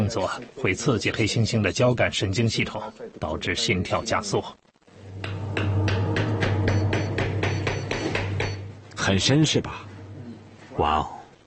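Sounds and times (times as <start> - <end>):
speech: 0.1 - 5.7, 9.0 - 9.9, 10.8 - 11.2
hammering a chisel into chimpanzee tooth root: 5.2 - 8.6.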